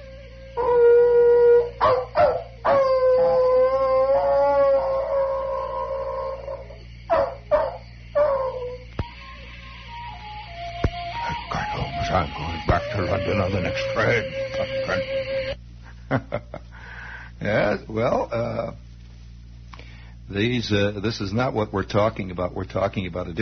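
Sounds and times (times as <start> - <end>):
hounds howling: 0.0 - 15.6
steady low hum: 0.0 - 23.3
hound yelps: 1.8 - 3.6, 5.8 - 8.8
speech: 20.6 - 23.3.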